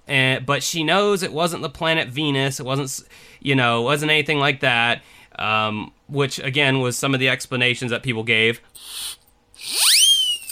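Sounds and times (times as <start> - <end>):
speech: 0.5 - 9.9
skeptic whistle sound effect: 9.6 - 10.5.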